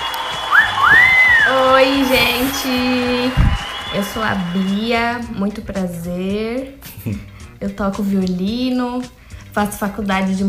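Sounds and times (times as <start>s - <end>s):
applause: 0.0s - 5.3s
whistling: 0.0s - 5.4s
laughter: 0.7s - 4.9s
speech: 1.5s - 10.4s.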